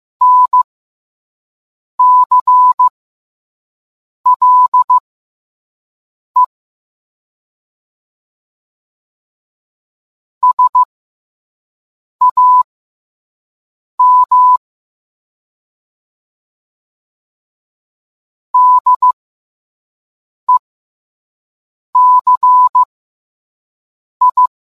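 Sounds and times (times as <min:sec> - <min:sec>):
morse code beeps: 0:00.2 - 0:00.7, 0:02.0 - 0:02.9, 0:04.3 - 0:05.0, 0:10.4 - 0:10.9, 0:12.2 - 0:12.7, 0:14.0 - 0:14.6, 0:18.6 - 0:19.2, 0:22.0 - 0:22.9, 0:24.2 - 0:24.5.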